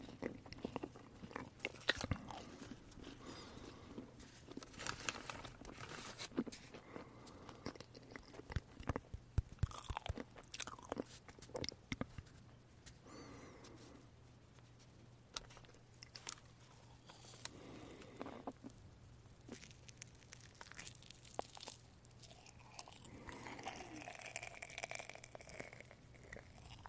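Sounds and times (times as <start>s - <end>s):
person eating marshmallows with sticky bites: 0.0s - 4.7s, 5.6s - 12.2s, 15.6s - 18.8s, 19.5s - 26.8s
faint steady low hum: 0.0s - 26.8s
mouth clicks and smacks: 7.6s - 12.3s.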